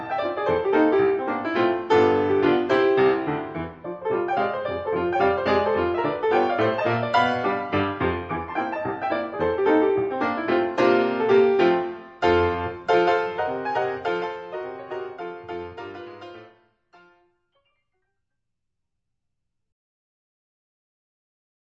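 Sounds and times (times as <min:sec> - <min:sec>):
solo piano: 0:00.0 - 0:17.2.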